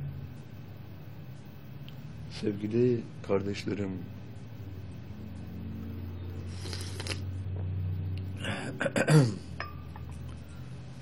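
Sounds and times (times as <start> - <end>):
low steady hum: 0.0 - 11.0
speech: 2.3 - 4.2, 8.8 - 9.5
coughing interrupting a religious address: 8.4 - 9.6.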